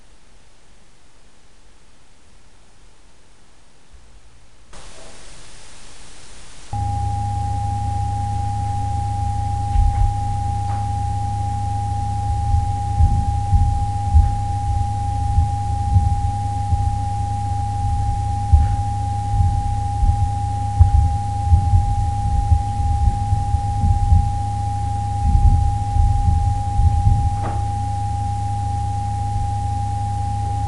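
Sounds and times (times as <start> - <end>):
modulating tone: 6.6 - 30.6.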